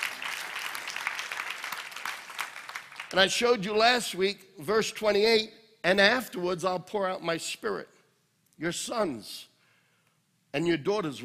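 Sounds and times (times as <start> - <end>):
audience applauding: 0.0 - 3.4
speech: 3.1 - 8.0, 8.6 - 9.5, 10.5 - 11.2.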